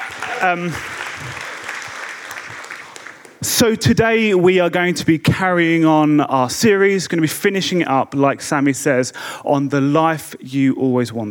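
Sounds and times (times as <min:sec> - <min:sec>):
audience clapping: 0:00.0 - 0:03.7
speech: 0:00.3 - 0:01.5, 0:03.4 - 0:11.2.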